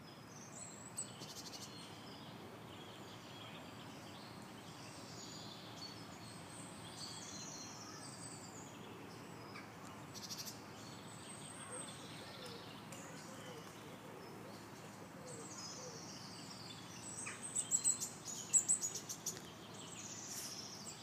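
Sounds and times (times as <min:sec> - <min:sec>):
birds singing in Amelisweerd: 0:00.0 - 0:21.0.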